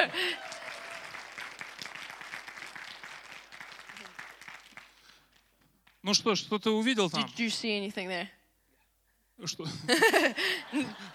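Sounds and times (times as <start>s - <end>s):
audience clapping: 0.0s - 6.0s
speech: 6.0s - 8.4s, 9.4s - 11.1s
laughter: 9.6s - 11.1s.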